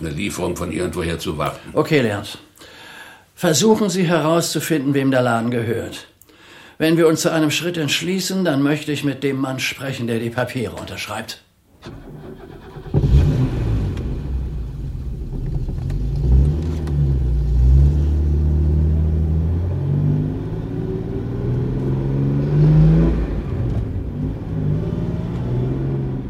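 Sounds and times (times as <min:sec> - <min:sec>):
speech: 0:00.0 - 0:02.8, 0:03.4 - 0:06.1, 0:06.8 - 0:12.2
car engine revving: 0:11.9 - 0:26.2.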